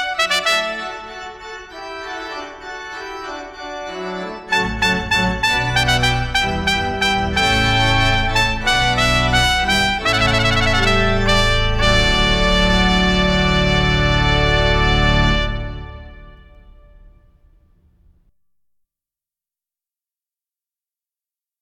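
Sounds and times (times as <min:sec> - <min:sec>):
orchestral allegro: 0:00.0 - 0:17.3.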